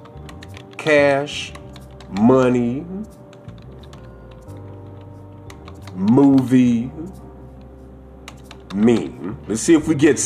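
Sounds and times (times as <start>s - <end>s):
typing a search on a computer keyboard: 0.0s - 2.5s, 3.2s - 6.5s, 8.3s - 9.1s
speech: 0.8s - 3.2s, 6.0s - 7.2s, 8.7s - 10.2s.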